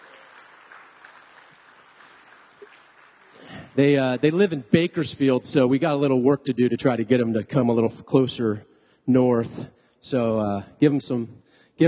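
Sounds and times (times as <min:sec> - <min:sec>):
audience clapping: 0:00.0 - 0:05.3
speech: 0:03.8 - 0:11.8.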